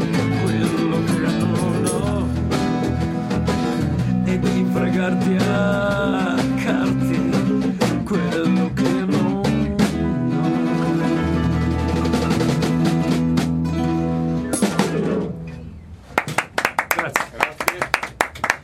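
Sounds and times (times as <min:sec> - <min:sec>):
song: 0:00.0 - 0:15.3
scattered handclaps from a small non-paying audience: 0:16.2 - 0:18.6.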